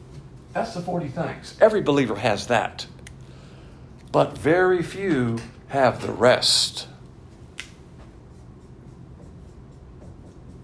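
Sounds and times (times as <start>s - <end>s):
speech: 0.5s - 3.0s, 4.1s - 6.9s
marker drawing blue lines on a board: 7.6s - 10.6s.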